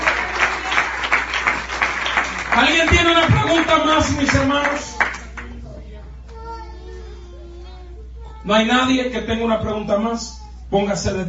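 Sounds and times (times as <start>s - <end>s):
audience applauding: 0.0s - 5.6s
speech: 2.6s - 4.9s, 8.5s - 11.2s.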